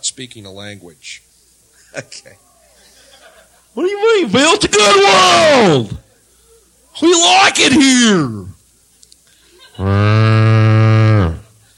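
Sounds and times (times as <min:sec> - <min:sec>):
speech: 0:00.2 - 0:01.3, 0:01.9 - 0:02.5, 0:03.8 - 0:06.0, 0:07.0 - 0:08.6, 0:09.8 - 0:10.2
laughter: 0:02.8 - 0:03.8, 0:09.4 - 0:10.1
cow mooing: 0:09.8 - 0:11.5.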